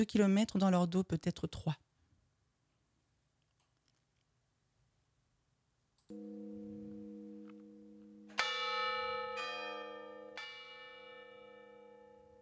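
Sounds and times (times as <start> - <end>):
speech: 0.0 - 1.8
distant church bells ringing in the wind: 6.1 - 12.4.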